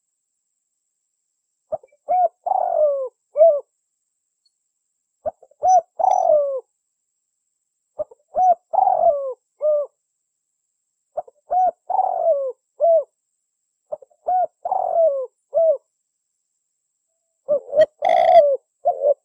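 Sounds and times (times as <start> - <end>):
Spotted Dove cooing as a lure call: 1.7 - 3.7, 5.2 - 6.7, 8.0 - 10.0, 11.2 - 13.1, 13.9 - 15.9, 17.5 - 19.2.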